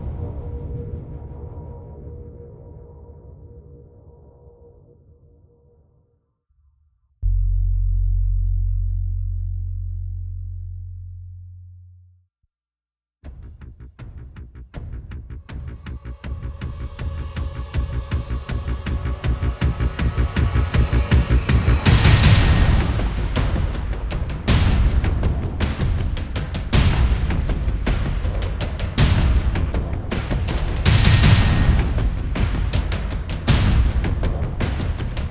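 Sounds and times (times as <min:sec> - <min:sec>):
percussion: 0:07.2 - 0:12.2, 0:13.2 - 0:35.2.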